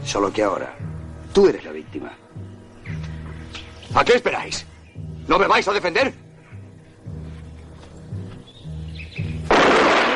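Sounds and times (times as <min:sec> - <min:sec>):
low tonal music: 0:00.0 - 0:09.5
speech: 0:00.1 - 0:02.5, 0:03.9 - 0:04.7, 0:05.3 - 0:06.2
gunshot in a mountainside chase scene: 0:09.5 - 0:10.1.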